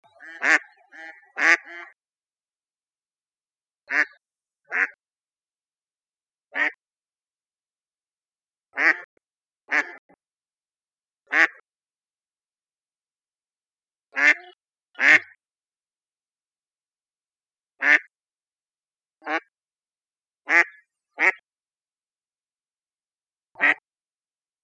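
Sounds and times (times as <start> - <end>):
mallard quacking: 0.0 - 2.0, 3.9 - 5.0, 6.6 - 6.8, 8.8 - 9.1, 9.7 - 10.1, 11.3 - 11.6, 14.2 - 15.4, 17.8 - 18.1, 20.5 - 21.4, 23.6 - 23.8.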